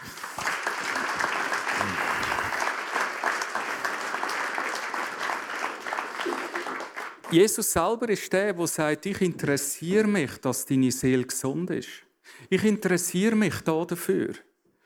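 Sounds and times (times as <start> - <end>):
audience applause: 0.0 - 7.5
speech: 7.3 - 14.5.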